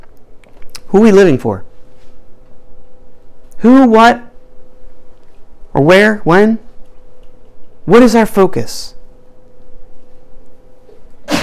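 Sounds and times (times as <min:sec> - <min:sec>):
low hum: 0:00.0 - 0:11.4
speech: 0:00.9 - 0:01.7, 0:03.6 - 0:04.3, 0:05.8 - 0:06.7, 0:07.9 - 0:09.0
sneeze: 0:11.2 - 0:11.4.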